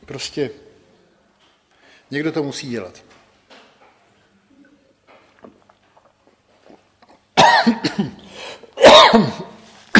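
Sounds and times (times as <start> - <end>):
speech: 0.1 - 0.7, 2.1 - 3.2
person coughing from choking: 7.4 - 9.9.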